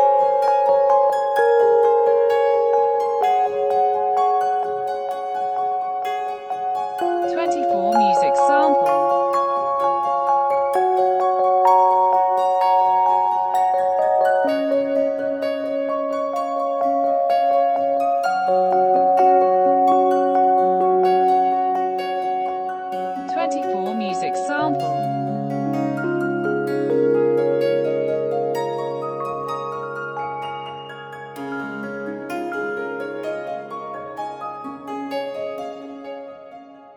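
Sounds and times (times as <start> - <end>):
electric piano: 0.0 - 36.9.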